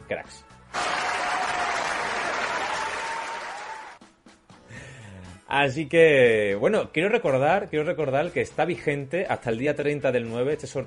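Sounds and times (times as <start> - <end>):
speech: 0.1 - 0.8, 5.5 - 10.8
applause: 0.7 - 4.0.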